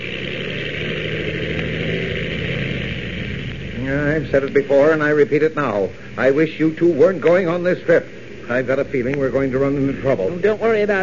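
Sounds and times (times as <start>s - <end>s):
plane taking off: 0.0s - 6.2s
speech: 4.2s - 11.0s.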